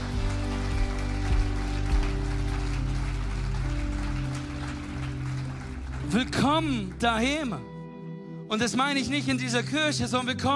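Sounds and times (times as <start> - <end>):
church audience applause: 0.0 - 7.5
speech: 6.1 - 7.7, 8.5 - 10.5.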